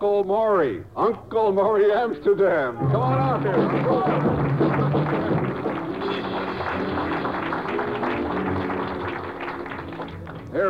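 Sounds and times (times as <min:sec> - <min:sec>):
speech: 0:00.0 - 0:05.4
audience applause: 0:02.8 - 0:10.6.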